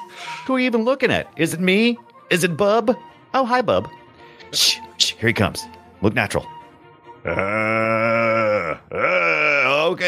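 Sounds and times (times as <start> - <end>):
speech: 0.5 - 6.6, 7.2 - 10.0
zombie-like voice groaning: 7.2 - 10.0.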